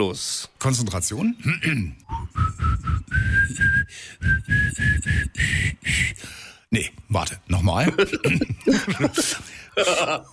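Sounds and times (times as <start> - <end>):
speech: 0.0 - 2.2, 7.1 - 10.3
person whistling a pop song melody: 2.1 - 6.1
laughter: 7.9 - 10.3.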